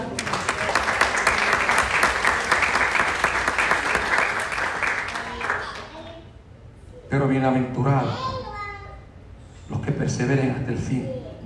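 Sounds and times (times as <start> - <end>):
audience applause: 0.0 - 6.0
speech: 7.2 - 8.4, 10.0 - 11.3.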